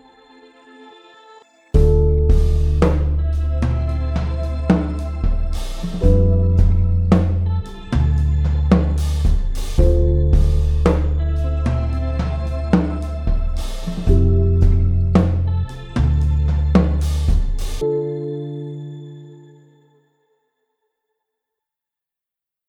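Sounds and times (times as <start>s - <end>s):
truck drums: 1.8s - 17.8s.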